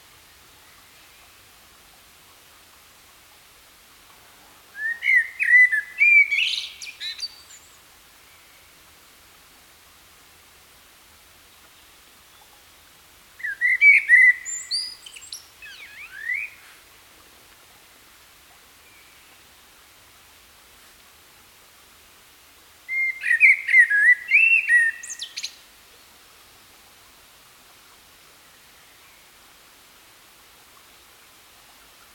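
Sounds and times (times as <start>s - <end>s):
common blackbird song of fluty whistles: 4.8s - 8.7s, 13.4s - 16.7s, 22.9s - 25.6s.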